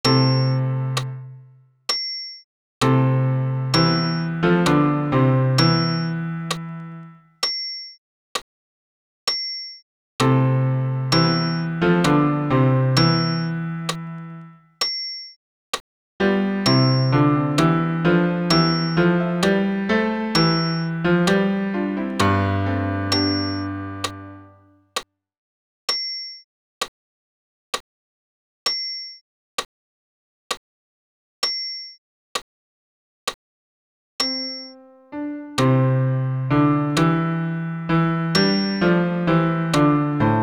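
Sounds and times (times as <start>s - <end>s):
piano accompaniment for bass voice: 0.0s - 1.6s, 2.8s - 7.3s, 10.2s - 14.7s, 16.2s - 24.8s, 34.2s - 40.4s.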